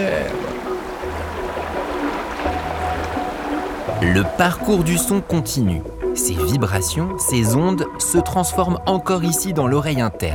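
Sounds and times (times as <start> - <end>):
flood water sloshing with a swell: 0.0 - 6.2
speech: 4.0 - 10.3.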